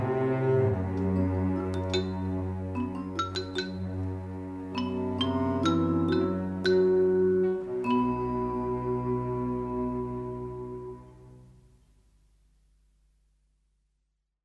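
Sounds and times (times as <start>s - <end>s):
active suspense music: 0.0s - 11.5s.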